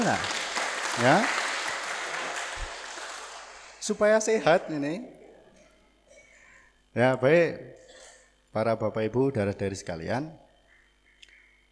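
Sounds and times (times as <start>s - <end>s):
audience applause: 0.0s - 3.9s
speech: 0.1s - 0.4s, 1.0s - 1.4s, 3.9s - 5.2s, 6.9s - 7.8s, 8.5s - 10.4s.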